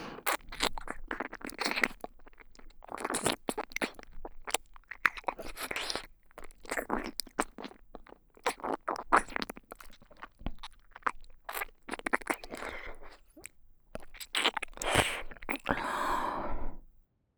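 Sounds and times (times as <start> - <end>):
close ear licking in the right ear: 0.0 - 16.9
erotic breathy sighs: 14.9 - 16.8.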